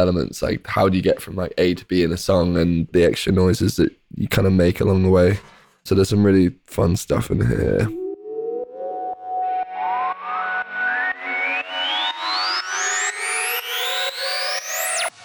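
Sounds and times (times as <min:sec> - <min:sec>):
speech: 0:00.0 - 0:08.0
Korg MS-20 synth resonance scream: 0:07.9 - 0:15.1.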